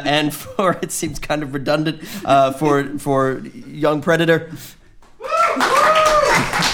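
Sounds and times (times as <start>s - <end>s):
speech: 0.0s - 4.8s
audience clapping: 5.0s - 6.7s.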